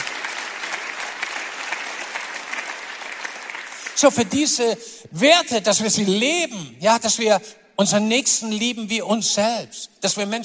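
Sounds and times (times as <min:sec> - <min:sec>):
crowd clapping: 0:00.0 - 0:04.6
speech: 0:04.0 - 0:10.4.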